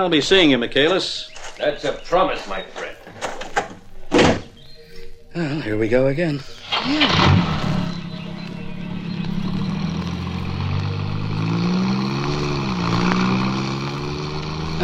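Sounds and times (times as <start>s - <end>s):
speech: 0.0s - 3.0s, 5.4s - 7.6s
old car engine starting and driving off: 6.6s - 14.8s.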